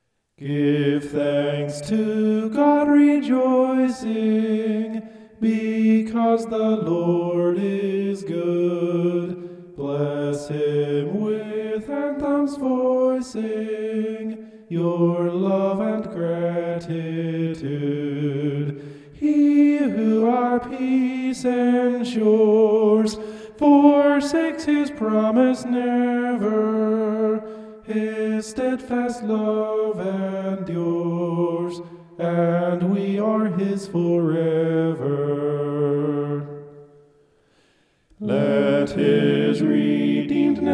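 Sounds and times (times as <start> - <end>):
homophonic vocals: 0.4 - 36.8, 38.2 - 40.7.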